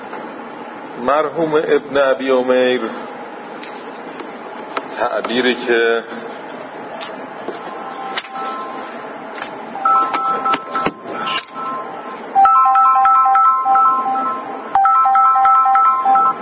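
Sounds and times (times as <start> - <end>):
speech: 1.0 - 3.2, 5.0 - 6.2
mobile phone ringtone during a class: 8.0 - 9.0, 9.8 - 16.4.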